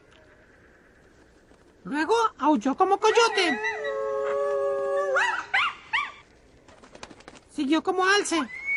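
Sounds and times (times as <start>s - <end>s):
speech: 1.9s - 3.9s, 7.6s - 8.6s
voice imitating rooster crow: 3.0s - 5.4s.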